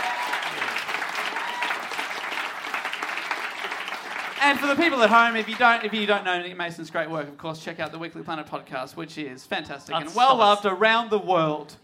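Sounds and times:
audience applause: 0.0 - 6.4
speech: 4.4 - 11.8.

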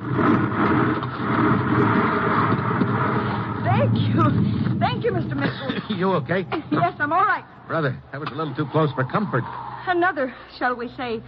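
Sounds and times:
huge boulders rolling past in a rockslide: 0.0 - 7.3
speech: 3.9 - 11.2
laughter: 5.1 - 7.3.

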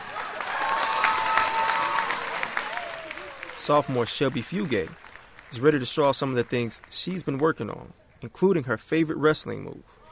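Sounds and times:
crowd applauding in a packed gym: 0.0 - 7.7
speech: 3.7 - 10.0.

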